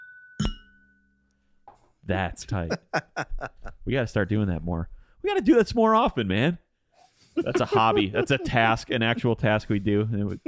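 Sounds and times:
glasses clinking in a toast: 0.2 - 1.0
speech: 2.1 - 6.6, 7.4 - 10.4
laughter: 2.6 - 3.8, 7.4 - 10.4.

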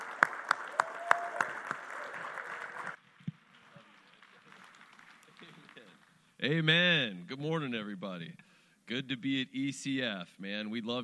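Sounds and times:
congregation clapping at Erie Christian Fellowship Church service: 0.0 - 6.3
speech: 6.4 - 11.0.

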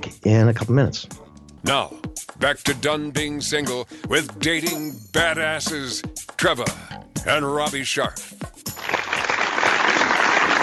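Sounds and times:
speech: 0.1 - 8.4
crowd applause: 8.8 - 10.6.

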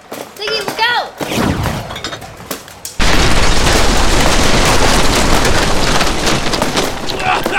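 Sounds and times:
roar of crashing debris: 1.2 - 7.5
rocket explosion: 1.3 - 7.1.

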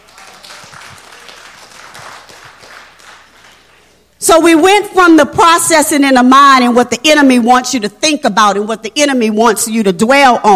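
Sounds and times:
audience applause: 0.0 - 3.9
speech: 4.2 - 10.5.

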